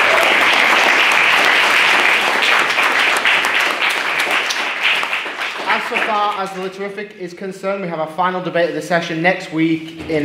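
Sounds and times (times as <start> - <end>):
audience applause: 0.0 - 6.9
speech: 6.1 - 10.2.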